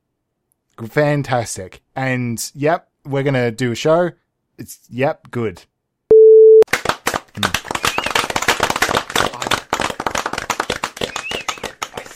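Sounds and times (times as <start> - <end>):
speech: 0.8 - 5.7
short steady electronic beep: 6.1 - 6.6
applause sound effect: 6.7 - 12.1.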